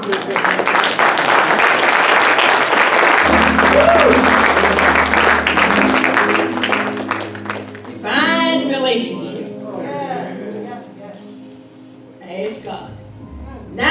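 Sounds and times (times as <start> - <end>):
audience clapping: 0.0 - 8.2
speech: 0.1 - 1.0, 3.8 - 4.4
low sustained musical tone: 3.2 - 13.8.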